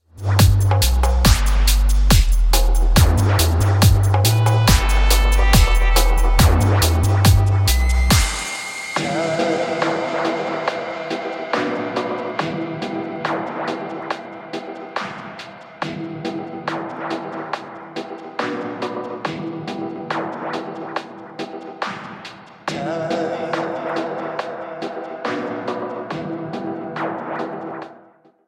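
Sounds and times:
dub remix: 0:00.2 - 0:28.0
Machinedrum gunshot: 0:00.4 - 0:09.1.

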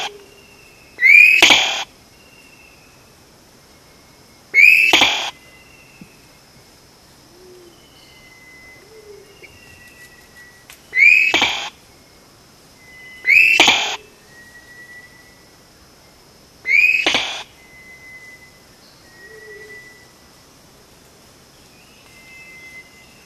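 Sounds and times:
Vogelkop bowerbird loud short sharp note: 0:01.0 - 0:01.9, 0:04.6 - 0:05.4, 0:13.1 - 0:14.1, 0:16.7 - 0:17.5.

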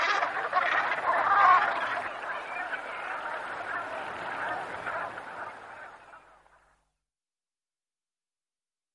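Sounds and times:
Brant goose flock honking: 0:00.0 - 0:06.6.

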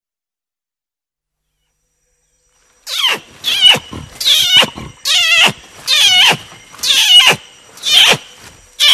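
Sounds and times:
Sumatran orangutan giving shrill rasping squeals: 0:02.8 - 0:08.9.

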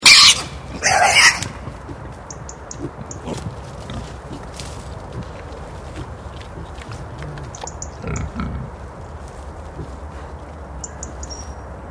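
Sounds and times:
wild boar giving short deep grunts: 0:00.2 - 0:08.9, 0:09.7 - 0:10.4.

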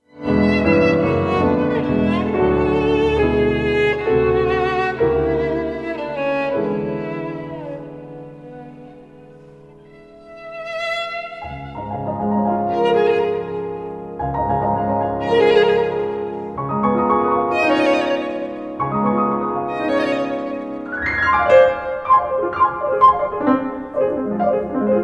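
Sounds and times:
violin and piano rondo allegro: 0:00.0 - 0:25.0.

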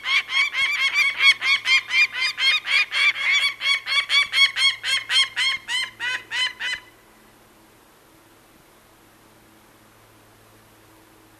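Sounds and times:
Peregrine falcon harsh cackling call: 0:00.0 - 0:06.9.

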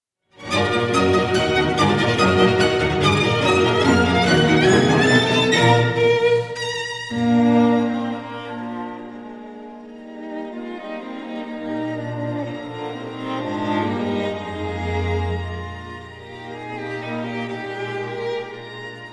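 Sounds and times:
string quintet in A minor allegro: 0:00.4 - 0:19.1.

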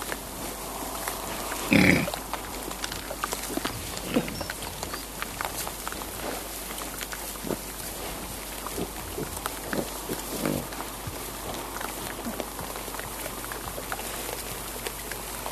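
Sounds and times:
wild boar giving a loud rough grunt: 0:00.1 - 0:15.4.

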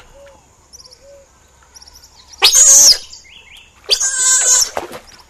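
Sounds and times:
Giant otter screaming: 0:02.4 - 0:03.0, 0:03.9 - 0:04.8.

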